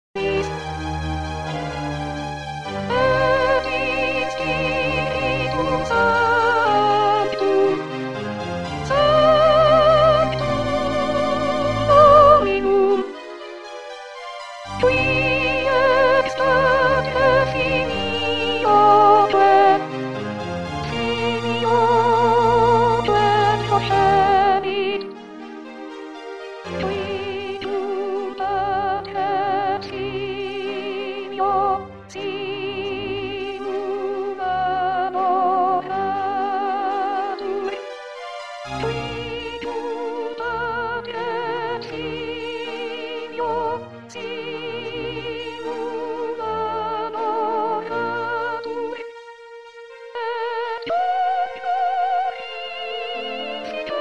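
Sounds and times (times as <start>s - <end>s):
soprano singing: 0.0s - 53.9s.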